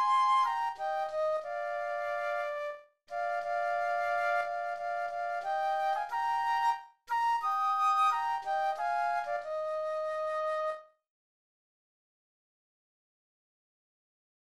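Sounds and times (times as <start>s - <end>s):
flute duet: 0.0s - 10.9s.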